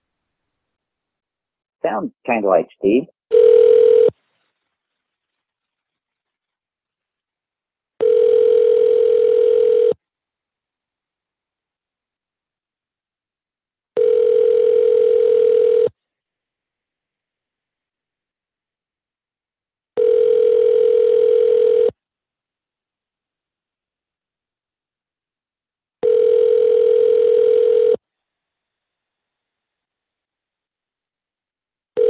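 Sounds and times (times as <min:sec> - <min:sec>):
speech: 0:01.8 - 0:03.5
telephone ringing tone while placing a call: 0:03.3 - 0:04.1, 0:08.0 - 0:10.0, 0:14.0 - 0:15.9, 0:20.0 - 0:21.9, 0:26.0 - 0:28.0.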